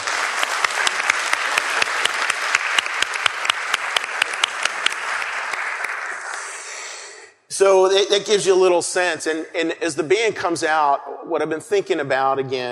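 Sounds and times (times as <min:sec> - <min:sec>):
crowd clapping: 0:00.0 - 0:06.8
speech: 0:07.6 - 0:12.6.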